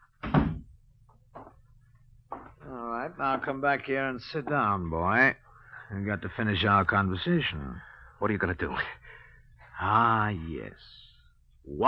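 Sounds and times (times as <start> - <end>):
door closing thud: 0.2 - 0.7
speech: 3.1 - 9.2, 9.8 - 11.8.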